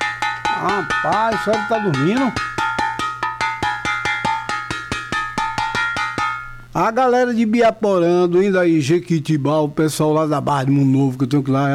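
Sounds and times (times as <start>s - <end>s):
cooking pan being banged: 0.0s - 6.8s
speech: 0.6s - 2.5s, 6.8s - 11.7s.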